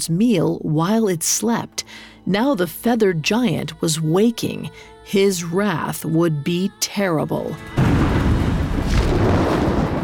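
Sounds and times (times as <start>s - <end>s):
speech: 0.0s - 8.0s
deafening thunderous crash: 7.8s - 10.0s.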